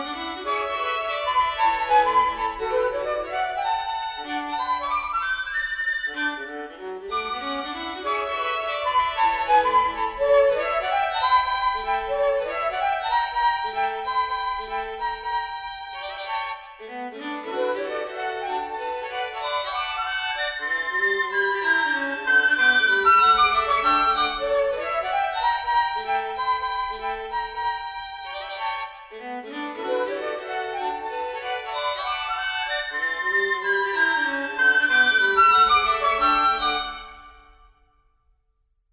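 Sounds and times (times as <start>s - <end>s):
flute playing a serenade: 0.0s - 37.8s.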